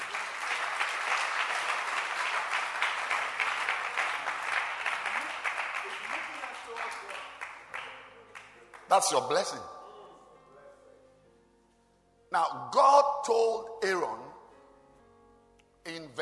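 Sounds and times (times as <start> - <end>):
church congregation clapping hands: 0.0 - 9.6
speech: 8.9 - 9.8, 12.7 - 14.2.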